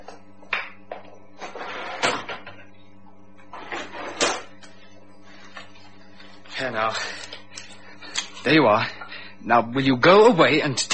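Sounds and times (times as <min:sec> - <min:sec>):
drawer being opened: 0:03.5 - 0:04.5
speech: 0:06.6 - 0:07.3, 0:08.4 - 0:10.9.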